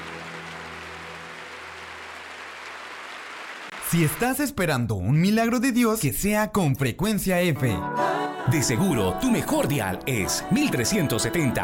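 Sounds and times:
audience applause: 0.0 - 4.5
speech: 3.9 - 11.6.

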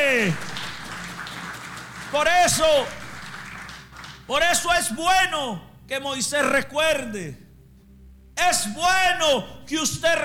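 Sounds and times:
audience applauding: 0.0 - 4.4
speech: 0.2 - 0.5, 2.1 - 3.0, 4.3 - 7.4, 8.4 - 10.2.

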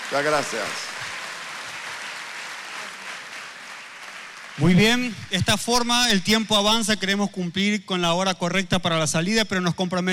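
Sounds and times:
audience applause: 0.0 - 5.1
speech: 0.1 - 0.9, 4.6 - 10.1.

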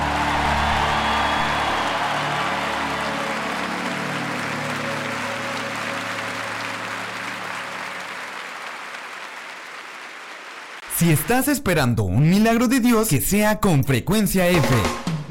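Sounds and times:
audience applause: 0.0 - 11.5
speech: 11.0 - 15.1.

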